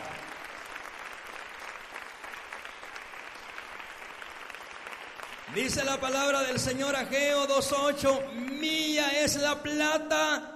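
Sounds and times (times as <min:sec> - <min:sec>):
audience applause: 0:00.0 - 0:06.5
speech: 0:05.5 - 0:10.5.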